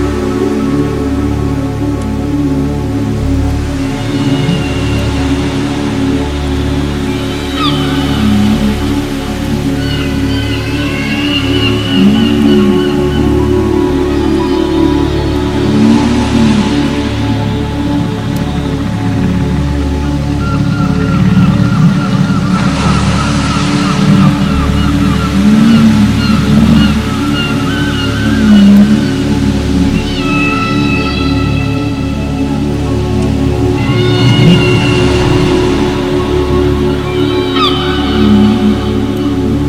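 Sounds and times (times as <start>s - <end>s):
sleeping dolphins: 0.0s - 39.6s.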